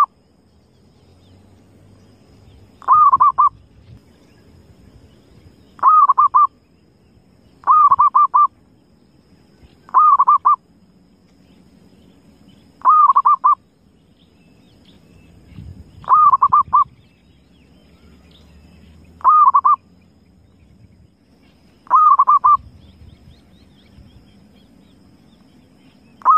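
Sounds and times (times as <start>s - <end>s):
zebra dove cooing: 2.8s - 3.6s, 5.8s - 6.5s, 7.6s - 8.5s, 9.9s - 10.6s, 12.8s - 13.6s, 16.0s - 17.0s, 19.2s - 19.8s, 21.8s - 22.7s, 26.2s - 26.3s.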